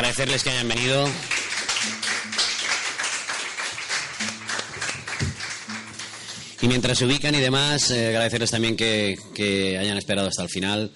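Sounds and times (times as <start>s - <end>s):
audience applause: 0.0s - 6.8s
speech: 0.1s - 1.4s, 6.6s - 10.9s.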